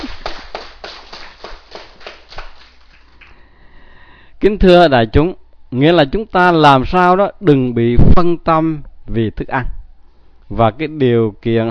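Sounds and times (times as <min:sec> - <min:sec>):
rhythmic audience clapping: 0:00.0 - 0:03.4
speech: 0:04.4 - 0:09.8, 0:10.5 - 0:11.6.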